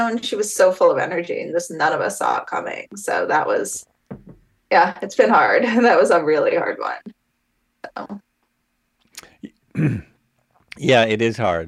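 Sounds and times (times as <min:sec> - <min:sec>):
speech: 0:00.0 - 0:03.9, 0:04.7 - 0:07.2, 0:07.9 - 0:08.2, 0:09.8 - 0:10.1, 0:10.8 - 0:11.6
cough: 0:09.8 - 0:10.2.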